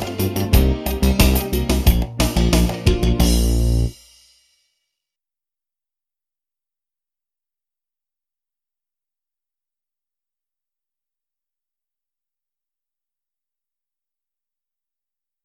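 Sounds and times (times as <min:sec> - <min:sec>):
swing tune: 0:00.0 - 0:04.0.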